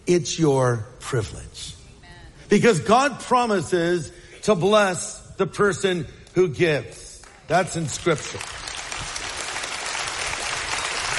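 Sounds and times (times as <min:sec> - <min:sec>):
speech: 0:00.1 - 0:01.8, 0:02.5 - 0:08.6
church congregation clapping during a sermon: 0:07.2 - 0:11.1.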